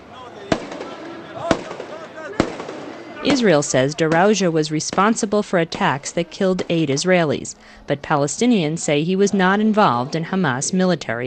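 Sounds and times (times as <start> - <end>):
crowd noise and voices at a funeral: 0.0 - 11.2
automatic weapons fired into the air at a Hamas funeral: 0.5 - 3.5
speech: 3.2 - 11.2.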